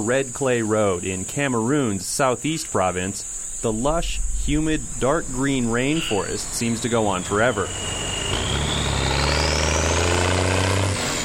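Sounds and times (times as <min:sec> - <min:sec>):
speech: 0:00.0 - 0:08.4
logging trucks passing on road: 0:06.0 - 0:11.2.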